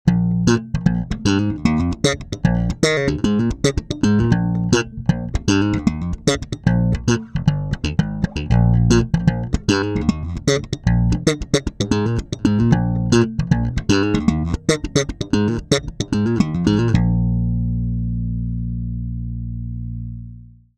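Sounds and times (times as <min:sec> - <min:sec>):
slapped bass guitar: 0:00.0 - 0:20.7.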